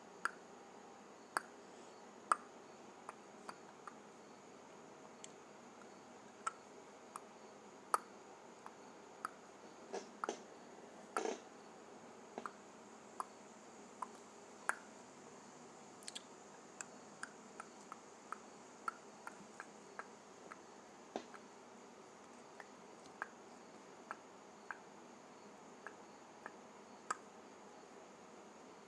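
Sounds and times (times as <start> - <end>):
faint steady hiss: 0.0 - 28.8
tongue clicks: 1.3 - 1.6, 3.1 - 4.0, 5.2 - 7.3, 7.9 - 9.4, 10.0 - 10.5, 12.4 - 12.6, 13.2 - 13.4, 14.0 - 14.9, 16.0 - 21.5, 22.2 - 23.4, 24.0 - 24.9, 25.8 - 27.3.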